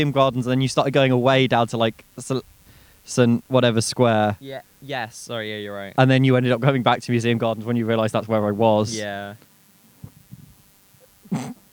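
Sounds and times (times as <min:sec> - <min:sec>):
faint low sounds: 0:00.0 - 0:09.4
speech: 0:00.0 - 0:09.5, 0:11.3 - 0:11.6
sneeze: 0:11.3 - 0:11.6.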